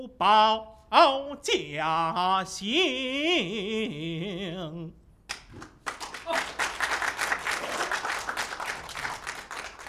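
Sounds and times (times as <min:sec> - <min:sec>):
speech: 0:00.2 - 0:05.0
audience clapping: 0:05.3 - 0:09.8.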